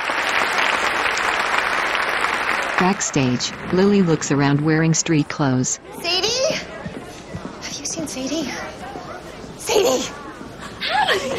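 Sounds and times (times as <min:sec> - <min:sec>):
audience applause: 0:00.0 - 0:04.6
speech: 0:02.8 - 0:06.7, 0:08.1 - 0:09.0, 0:09.6 - 0:10.2, 0:10.8 - 0:11.3
laughter: 0:09.6 - 0:11.3.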